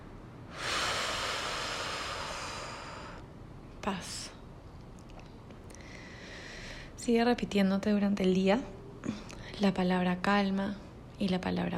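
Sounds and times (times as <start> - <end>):
long exhale breath: 0.5 - 3.2, 5.8 - 7.0
speech: 3.8 - 4.4, 7.0 - 11.7.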